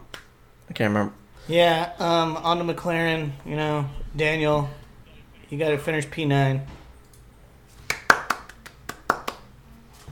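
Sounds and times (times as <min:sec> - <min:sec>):
single hand clap: 0:00.1 - 0:00.3, 0:07.9 - 0:09.4
speech: 0:00.7 - 0:04.8, 0:05.5 - 0:06.8.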